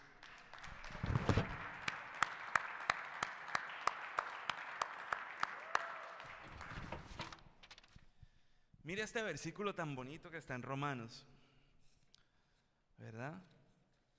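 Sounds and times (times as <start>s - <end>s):
audience applause: 0.0s - 7.4s
speech: 8.9s - 11.4s, 13.2s - 13.5s.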